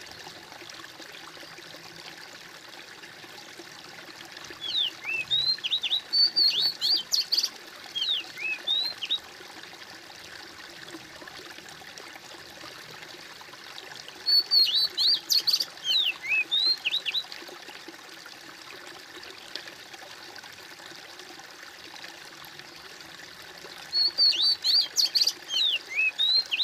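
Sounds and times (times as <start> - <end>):
bird singing high twisting whistled chirps: 4.6 - 9.2, 14.2 - 17.2, 23.9 - 26.6.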